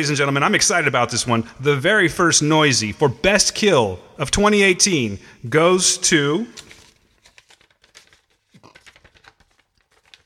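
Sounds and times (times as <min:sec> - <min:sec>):
speech: 0:00.0 - 0:06.7
paper envelope being torn open at an awards-show announcement: 0:06.6 - 0:10.2.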